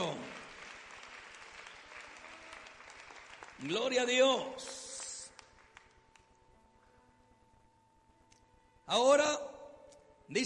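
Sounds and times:
audience clapping: 0:00.0 - 0:06.4
speech: 0:03.6 - 0:04.8, 0:08.9 - 0:09.5, 0:10.3 - 0:10.4.

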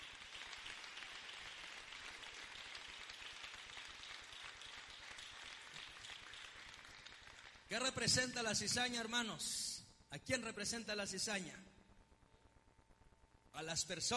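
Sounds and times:
audience applauding: 0:00.0 - 0:07.9
speech: 0:07.7 - 0:11.7, 0:13.6 - 0:14.1.

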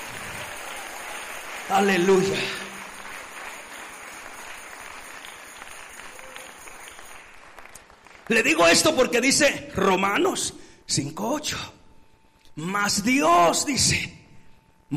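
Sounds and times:
audience applauding: 0:00.0 - 0:09.1
speech: 0:01.7 - 0:02.7, 0:08.3 - 0:11.8, 0:12.6 - 0:14.2.

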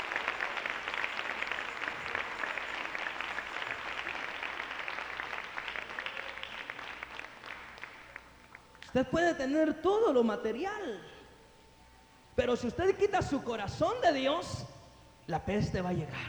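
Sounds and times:
audience applause: 0:00.0 - 0:08.8
speech: 0:09.0 - 0:11.1, 0:12.4 - 0:14.6, 0:15.3 - 0:16.2.

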